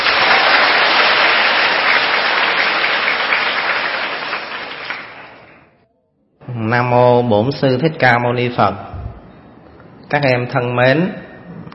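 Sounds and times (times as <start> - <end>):
audience applause: 0.0 - 5.7
speech: 6.7 - 8.9, 10.1 - 11.2.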